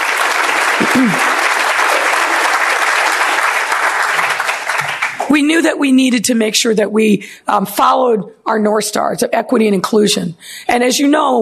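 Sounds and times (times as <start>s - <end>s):
audience clapping: 0.0s - 5.4s
speech: 1.0s - 1.3s, 5.3s - 11.4s.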